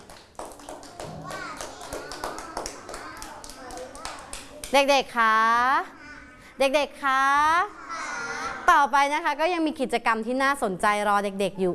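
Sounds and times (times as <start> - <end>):
children clapping hands: 0.0 - 4.9
young voices chattering and calling out: 0.9 - 4.8, 5.8 - 6.6, 7.4 - 8.9
speech: 4.7 - 6.0, 6.6 - 7.8, 8.7 - 11.7.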